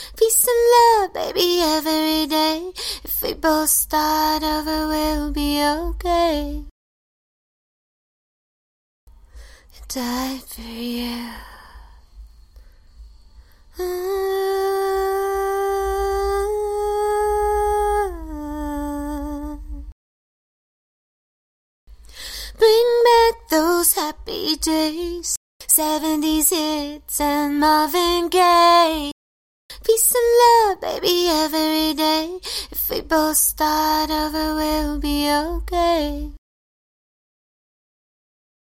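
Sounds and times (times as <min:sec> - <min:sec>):
a cappella vocals in C minor: 0:00.0 - 0:06.7, 0:09.7 - 0:12.0, 0:13.7 - 0:20.0, 0:22.1 - 0:36.4.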